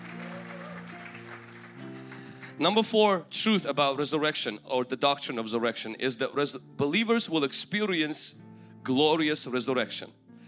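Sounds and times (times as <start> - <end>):
audience applause: 0.0 - 2.6
speech: 2.6 - 10.2.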